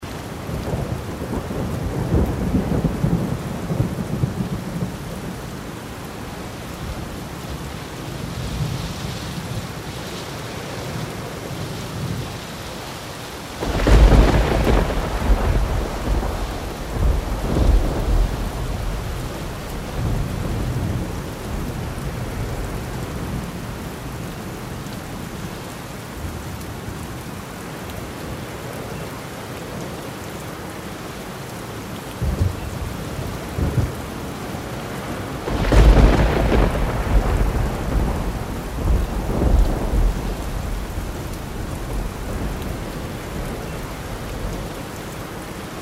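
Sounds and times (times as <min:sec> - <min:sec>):
rainstorm: 0:00.0 - 0:45.8.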